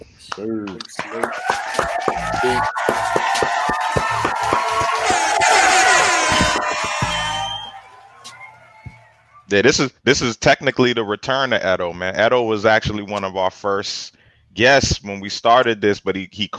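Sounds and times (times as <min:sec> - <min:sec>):
speech: 0:00.4 - 0:01.4, 0:02.4 - 0:03.2, 0:09.5 - 0:16.5
crowd clapping and cheering: 0:00.7 - 0:09.2.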